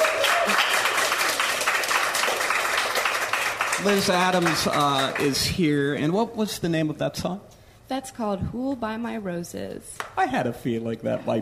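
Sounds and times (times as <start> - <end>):
round of applause: 0.0 - 5.6
speech: 3.8 - 11.3.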